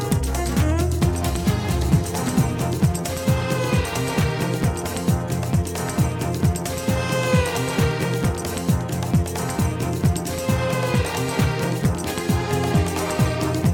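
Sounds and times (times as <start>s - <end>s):
jazz funk music: 0.0s - 13.7s.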